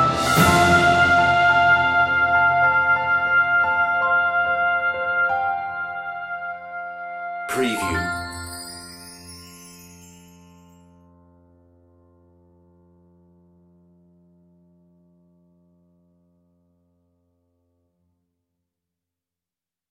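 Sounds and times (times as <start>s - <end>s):
orchestral Christmas piece: 0.0s - 10.8s.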